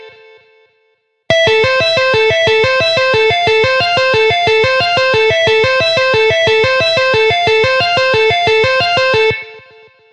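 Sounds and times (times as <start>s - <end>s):
tapping on guitar: 1.3s - 9.6s.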